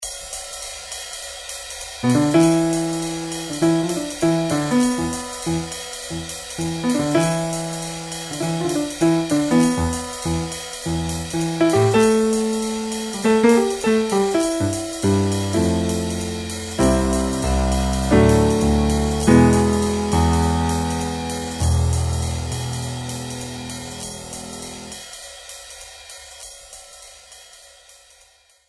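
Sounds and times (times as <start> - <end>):
blues music in E: 2.0 - 25.0.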